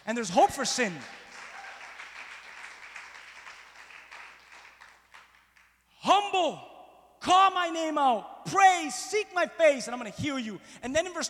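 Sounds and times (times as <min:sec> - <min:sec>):
speech: 0:00.1 - 0:01.2, 0:06.4 - 0:11.2
crowd applause: 0:00.8 - 0:05.7.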